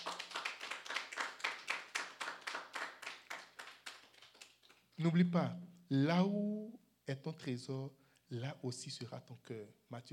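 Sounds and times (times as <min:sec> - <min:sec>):
church congregation clapping in unison: 0:00.0 - 0:05.0
speech: 0:05.0 - 0:10.1.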